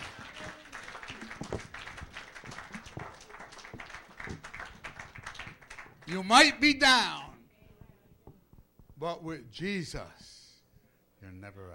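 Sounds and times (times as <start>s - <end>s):
audience hand clapping: 0.0s - 6.6s
speech: 6.1s - 7.2s, 9.0s - 10.3s, 11.5s - 11.7s.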